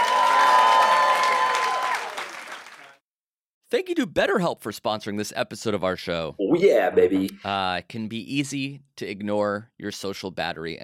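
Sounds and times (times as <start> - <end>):
audience applause and cheering: 0.0 - 3.0
speech: 3.7 - 10.8.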